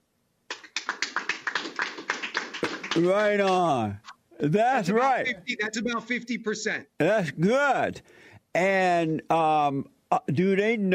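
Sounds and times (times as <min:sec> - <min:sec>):
audience applause: 0:00.5 - 0:03.7
speech: 0:03.0 - 0:10.9.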